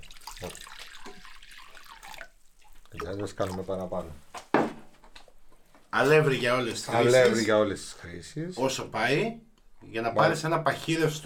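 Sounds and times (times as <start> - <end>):
lukewarm water pouring into fritter batter: 0.0 - 4.1
speech: 0.4 - 0.7, 3.1 - 4.3, 6.0 - 11.2.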